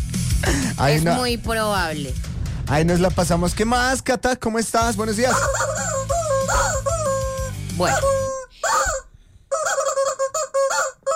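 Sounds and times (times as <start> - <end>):
speech: 0.8 - 5.8, 7.8 - 8.2
roosters squawking in the studio: 5.2 - 11.1.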